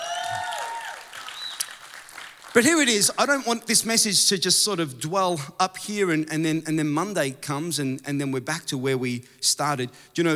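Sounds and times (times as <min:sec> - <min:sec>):
crowd applause: 0:00.0 - 0:02.8
speech: 0:02.6 - 0:10.3.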